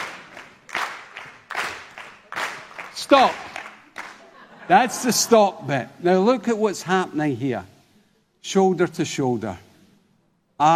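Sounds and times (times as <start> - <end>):
group clapping in rhythm: 0.0 - 4.6
speech: 3.0 - 3.5, 4.7 - 7.7, 8.4 - 9.7, 10.6 - 10.7
laughter: 3.7 - 6.0.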